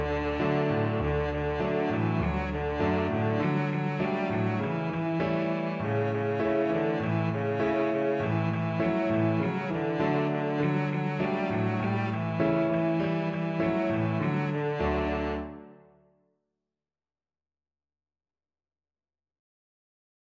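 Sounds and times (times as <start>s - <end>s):
violoncello: 0.0s - 15.9s.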